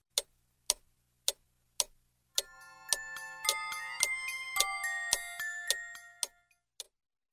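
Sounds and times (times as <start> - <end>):
large clock ticking: 0.0 - 7.3
large clock chiming melody: 2.4 - 6.6.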